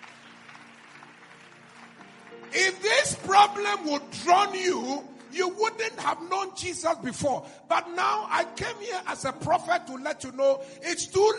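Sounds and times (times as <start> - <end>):
audience clapping: 0.0 - 6.0
speech: 2.5 - 11.3.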